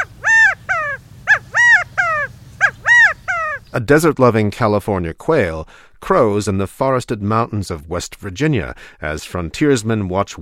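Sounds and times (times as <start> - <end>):
Australian laughing kookaburra guffawing in the Florida Everglades: 0.0 - 3.7
speech: 3.7 - 10.4.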